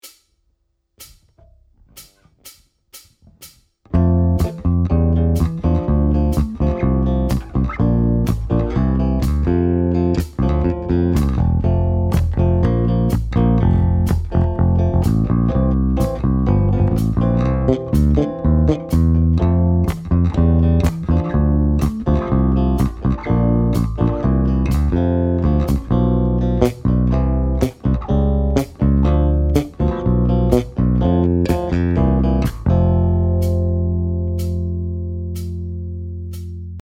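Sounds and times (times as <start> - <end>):
bassline: 1.0 - 36.7.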